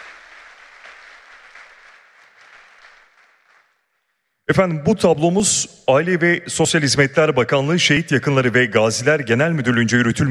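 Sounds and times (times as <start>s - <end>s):
audience applause: 0.0s - 3.9s
speech: 4.5s - 10.2s.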